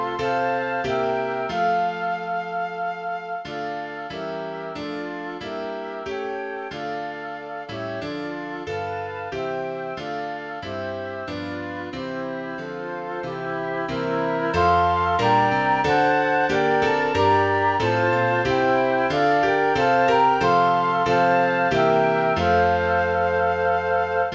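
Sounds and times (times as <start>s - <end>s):
flute: 0.0s - 24.3s
piano: 0.0s - 24.3s.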